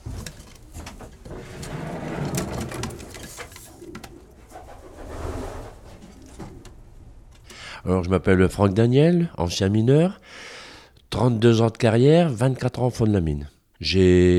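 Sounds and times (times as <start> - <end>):
pigeon wings fluttering: 0.0 - 6.8
pigeons cooing in an enclosed loft: 1.4 - 6.8
speech: 7.9 - 10.5, 11.2 - 14.3.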